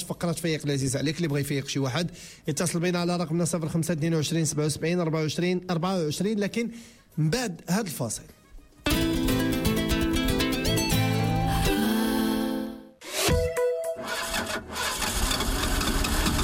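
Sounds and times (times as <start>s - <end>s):
speech: 0.1s - 8.4s
music in a Total Rubia oil ad: 8.0s - 14.4s
truck engine starting in a Total Rubia oil ad: 14.0s - 16.4s.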